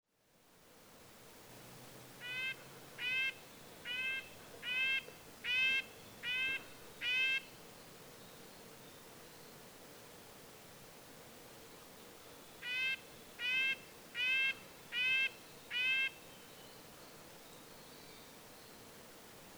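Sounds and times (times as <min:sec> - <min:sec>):
red-breasted nuthatch nasal horn-like calls: 0:02.2 - 0:07.5, 0:12.6 - 0:16.2.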